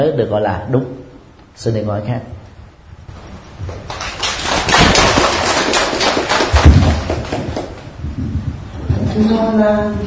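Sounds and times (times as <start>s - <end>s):
speech: 0.0s - 1.0s, 1.6s - 2.4s, 9.2s - 10.0s
applause: 3.7s - 7.9s.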